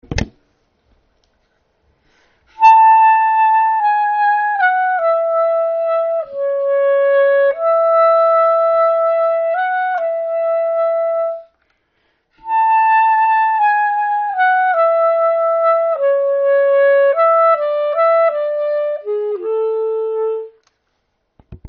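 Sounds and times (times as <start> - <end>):
wind section playing alone: 2.6 - 11.5, 12.4 - 20.6.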